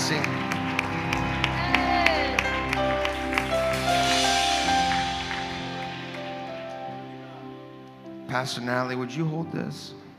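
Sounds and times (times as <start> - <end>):
audience hand clapping: 0.0 - 7.4
speech: 8.4 - 10.0.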